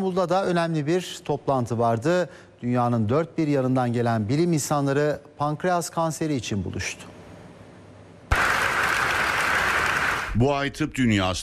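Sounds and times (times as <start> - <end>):
speech: 0.0 - 7.2, 10.4 - 11.4
scientists applauding pancreatic cancer drug results in Istanbul: 8.3 - 10.4.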